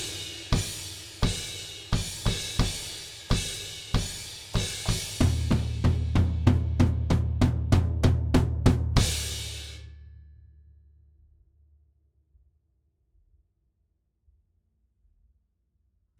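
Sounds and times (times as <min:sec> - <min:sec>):
drums: 0:00.0 - 0:10.0.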